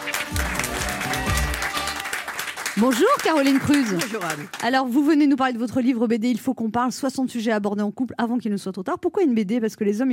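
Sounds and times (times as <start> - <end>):
talk show audience applause welcoming a guest: 0.0 - 4.8
speech: 2.8 - 10.1.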